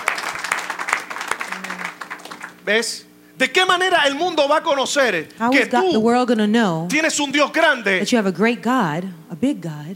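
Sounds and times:
audience applauding loudly: 0:00.0 - 0:03.0
speech: 0:02.6 - 0:09.9.

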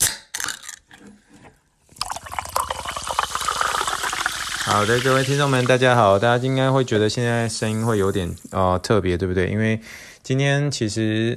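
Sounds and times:
sparkling water fizzing: 0:02.0 - 0:08.8
speech: 0:04.7 - 0:11.3.

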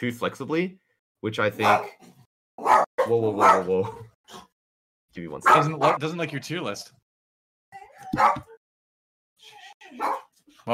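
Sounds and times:
speech: 0:00.0 - 0:04.5, 0:05.2 - 0:07.0, 0:08.1 - 0:08.5, 0:09.4 - 0:10.7
dog barking and yipping: 0:02.6 - 0:03.6, 0:08.0 - 0:08.6, 0:09.9 - 0:10.3.

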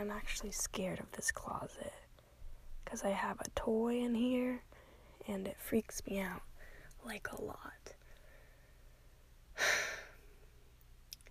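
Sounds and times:
speech: 0:00.0 - 0:02.0, 0:02.9 - 0:08.0
soft breath from a person sitting in a closet: 0:09.6 - 0:10.4.

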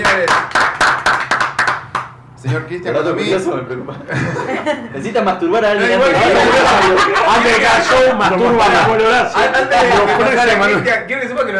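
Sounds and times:
audience applause: 0:00.0 - 0:02.2
speech: 0:02.4 - 0:11.5
laughter: 0:03.9 - 0:05.0, 0:05.8 - 0:08.9.

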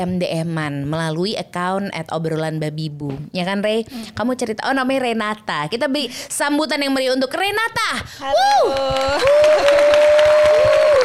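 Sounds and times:
speech: 0:00.0 - 0:11.0
applause sound effect: 0:08.3 - 0:11.0.

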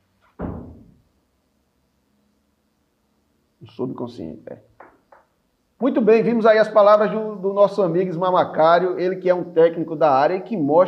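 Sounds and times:
door being closed: 0:00.2 - 0:01.0
speech: 0:03.6 - 0:04.7, 0:05.8 - 0:10.8.

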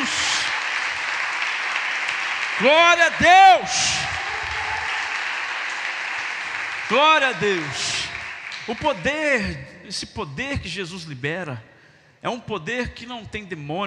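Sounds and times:
audience applause: 0:00.0 - 0:09.0
speech: 0:02.6 - 0:04.2, 0:06.9 - 0:08.1, 0:08.7 - 0:13.8.

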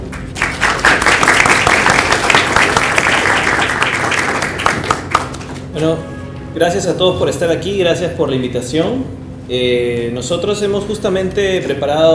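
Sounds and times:
audience applause: 0:00.0 - 0:05.6
speech: 0:05.8 - 0:12.1.

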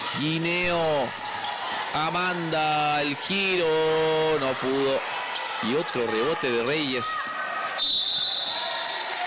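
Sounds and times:
speech: 0:00.1 - 0:01.3, 0:01.9 - 0:07.4
referee's whistle during basketball game: 0:07.8 - 0:09.2.

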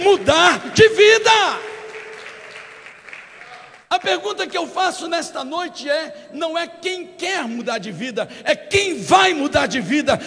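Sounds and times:
speech: 0:00.1 - 0:01.6, 0:04.0 - 0:10.2
large audience applause: 0:01.6 - 0:04.2.

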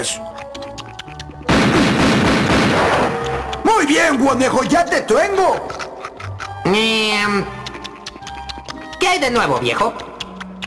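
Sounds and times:
speech: 0:00.0 - 0:00.7, 0:03.8 - 0:05.8, 0:06.6 - 0:07.6, 0:09.0 - 0:10.1
cartoon hunter's gunshot: 0:01.5 - 0:03.2.

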